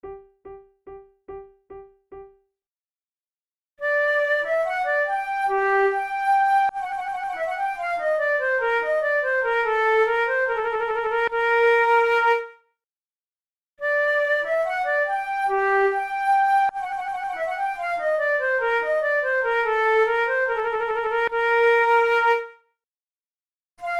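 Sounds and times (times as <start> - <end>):
baroque dance piece: 3.9 - 12.0, 14.0 - 22.0.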